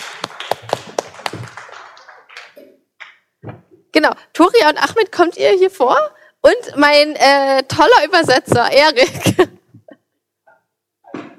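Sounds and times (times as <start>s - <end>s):
scattered hand clapping from a few people: 0.0s - 3.3s
speech: 4.0s - 9.5s.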